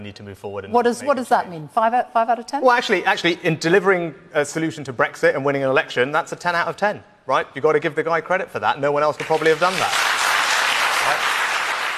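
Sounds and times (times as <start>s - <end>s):
speech: 0.0s - 10.1s
burst of applause: 9.2s - 11.9s.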